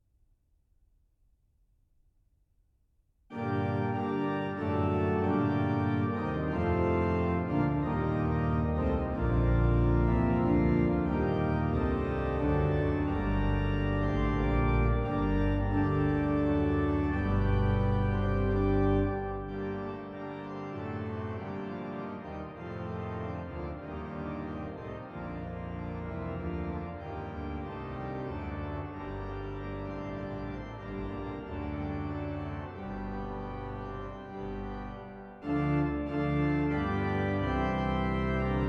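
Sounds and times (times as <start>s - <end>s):
galliard for organ: 3.3s - 38.6s.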